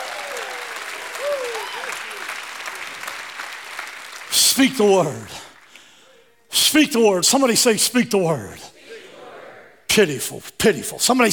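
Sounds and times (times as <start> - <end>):
audience applause: 0.0 - 5.7
speech: 4.6 - 5.4, 6.7 - 8.8, 10.0 - 11.3.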